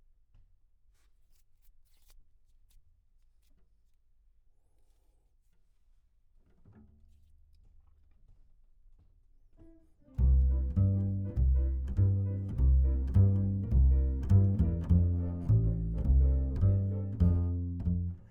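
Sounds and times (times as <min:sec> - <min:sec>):
bass: 0:10.1 - 0:18.2.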